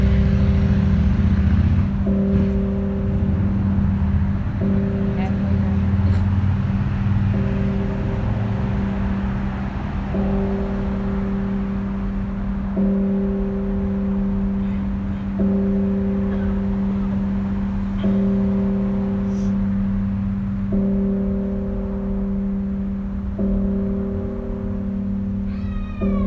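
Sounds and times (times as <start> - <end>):
bell tolling: 0.0 - 26.2.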